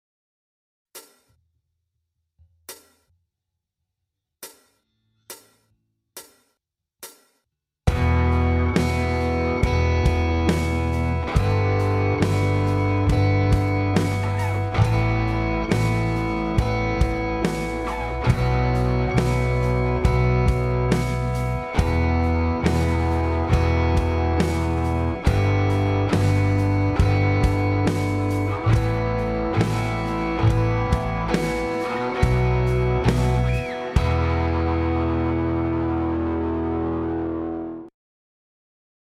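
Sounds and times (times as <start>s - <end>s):
rock and roll guitars: 7.9s - 37.9s.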